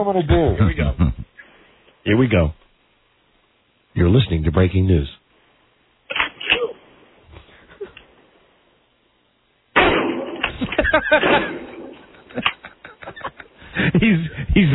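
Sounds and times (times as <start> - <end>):
speech: 0.0 - 1.3, 2.0 - 2.6, 4.0 - 5.2, 11.0 - 11.7, 13.8 - 14.7
laughter: 0.4 - 1.3, 10.5 - 14.7
double-barrel shotgun blasts: 9.8 - 12.0.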